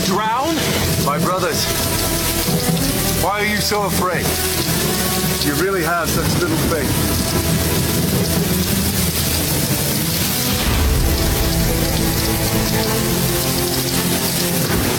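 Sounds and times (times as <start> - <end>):
churning waves: 0.0 - 14.9
storm wind: 0.0 - 14.9
speech: 1.2 - 7.9.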